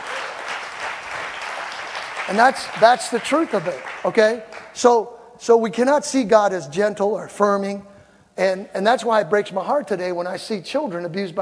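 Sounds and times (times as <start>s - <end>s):
church congregation clapping: 0.0s - 4.9s
speech: 2.3s - 11.3s.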